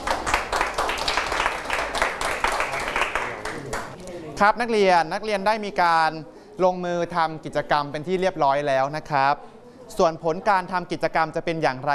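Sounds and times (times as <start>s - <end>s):
students clapping for classmates: 0.0s - 4.0s
speech: 4.4s - 11.9s.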